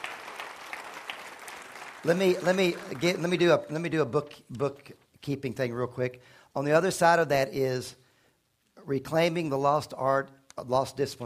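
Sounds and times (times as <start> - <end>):
church congregation clapping for the Lord: 0.0 - 4.4
speech: 2.0 - 8.0, 8.8 - 11.2.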